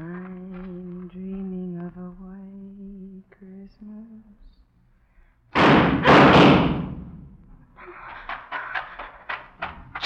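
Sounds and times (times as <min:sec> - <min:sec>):
gunshots in a radio drama: 0:05.6 - 0:07.0.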